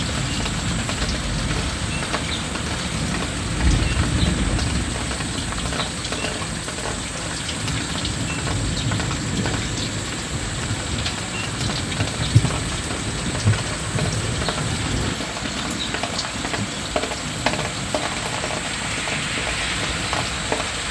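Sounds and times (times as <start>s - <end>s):
rain at night: 0.0s - 20.8s.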